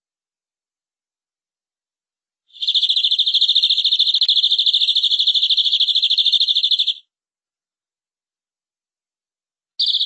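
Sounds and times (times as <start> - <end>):
canary trilling: 2.5 - 7.0, 9.8 - 10.0.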